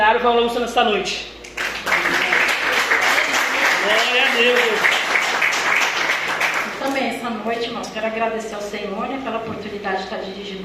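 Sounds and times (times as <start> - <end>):
speech: 0.1 - 2.2, 3.8 - 5.0, 6.8 - 10.6
audience applause: 1.6 - 6.8.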